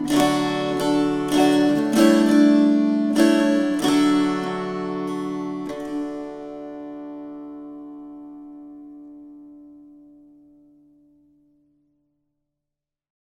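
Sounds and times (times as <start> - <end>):
string choir: 0.0 - 7.5.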